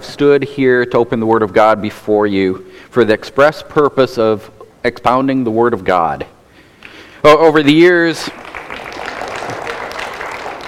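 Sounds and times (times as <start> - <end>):
speech: 0.2 - 6.4, 7.2 - 8.4
church congregation applauding: 8.1 - 10.6.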